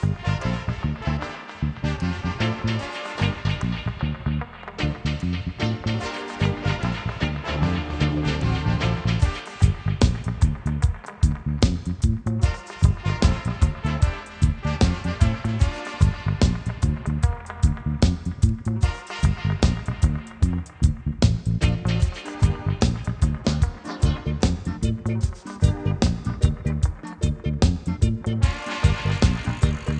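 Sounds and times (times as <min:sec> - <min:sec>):
reggae music: 0:00.0 - 0:29.9.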